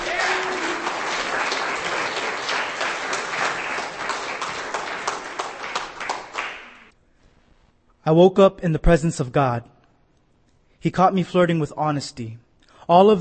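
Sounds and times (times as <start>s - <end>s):
audience applause for a performer at a poetry reading: 0.0s - 6.9s
speech: 8.1s - 9.8s, 10.8s - 13.2s.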